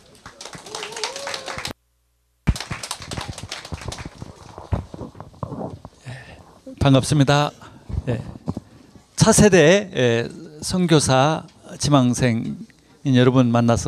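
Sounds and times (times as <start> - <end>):
applause: 0.0 - 1.8, 2.4 - 4.9
speech: 6.8 - 8.4, 9.2 - 13.8.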